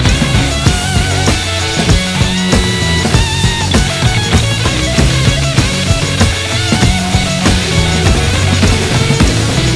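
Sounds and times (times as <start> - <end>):
big win music loop: 0.0 - 9.7.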